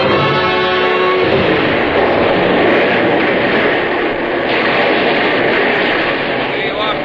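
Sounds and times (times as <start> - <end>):
artillery bombardment from guns: 0.0 - 7.0.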